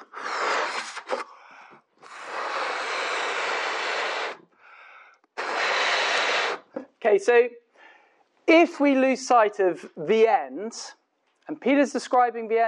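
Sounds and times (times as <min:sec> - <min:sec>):
balloon being blown up: 0:00.0 - 0:01.4, 0:02.0 - 0:04.5, 0:05.3 - 0:06.8
speech: 0:07.0 - 0:07.6, 0:08.5 - 0:12.6.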